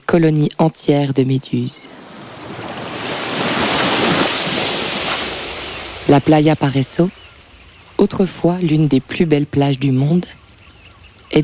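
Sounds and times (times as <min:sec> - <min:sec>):
speech: 0:00.1 - 0:02.0, 0:06.1 - 0:07.2, 0:08.0 - 0:10.4
surf washing onto a beach: 0:01.7 - 0:08.5.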